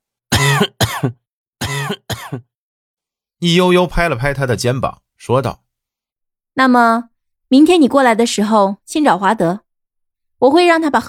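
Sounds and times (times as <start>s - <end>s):
person coughing after a gulp of undiluted liquor: 0.3s - 2.5s
speech: 0.6s - 1.2s, 3.4s - 5.6s, 6.6s - 9.6s, 10.4s - 11.0s.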